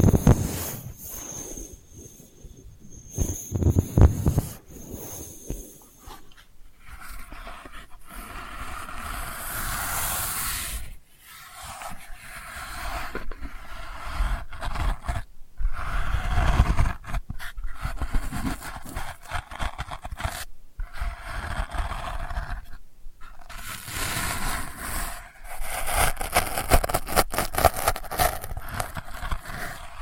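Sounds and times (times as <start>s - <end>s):
faint steady whine: 0.0s - 12.1s
delicate scratching: 0.0s - 30.0s.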